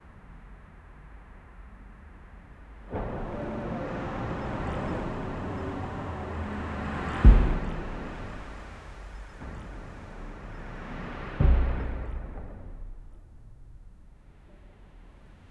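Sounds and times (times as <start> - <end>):
city room ambience: 2.9 - 13.0.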